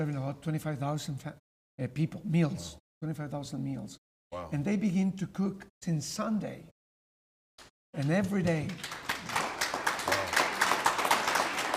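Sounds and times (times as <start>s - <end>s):
speech: 0.0s - 6.8s, 7.6s - 9.1s
clapping: 7.6s - 11.7s.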